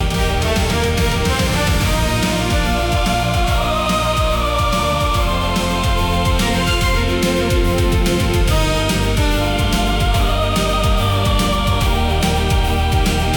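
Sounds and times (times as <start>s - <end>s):
music loop: 0.0s - 13.3s.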